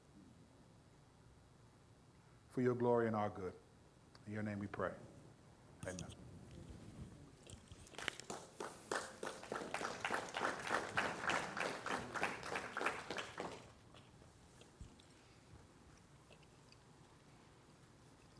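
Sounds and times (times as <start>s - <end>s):
speech: 2.6s - 3.6s, 4.3s - 5.1s, 5.8s - 6.3s
audience clapping: 7.8s - 13.8s.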